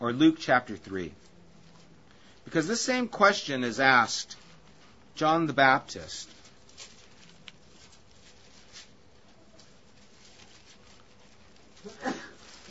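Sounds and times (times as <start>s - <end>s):
speech: 0.1s - 1.3s, 2.5s - 4.4s, 5.2s - 6.4s
person sneezing: 11.8s - 12.5s.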